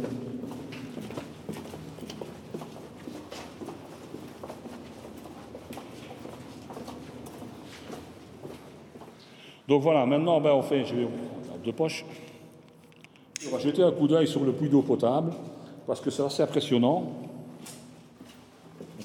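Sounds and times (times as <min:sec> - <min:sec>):
footsteps walking downhill on a damp path: 0:00.0 - 0:09.2
speech: 0:09.7 - 0:12.3, 0:13.5 - 0:17.2.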